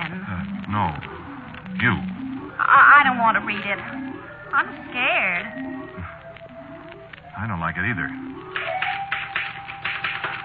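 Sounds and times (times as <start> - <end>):
speech: 0.7 - 1.1, 1.8 - 5.7, 7.4 - 8.5
typewriter typing: 8.6 - 10.4.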